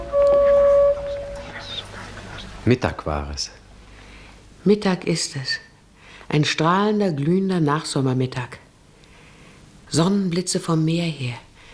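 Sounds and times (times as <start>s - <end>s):
vehicle horn honking in the distance: 0.0s - 1.8s
speech: 2.6s - 3.6s, 4.6s - 5.7s, 6.3s - 8.6s, 9.9s - 11.5s.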